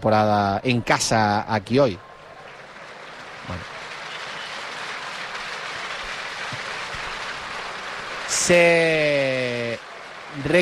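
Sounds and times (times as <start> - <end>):
speech: 0.0 - 2.1, 3.4 - 3.7, 8.5 - 10.6
arena crowd applauding: 1.6 - 10.6.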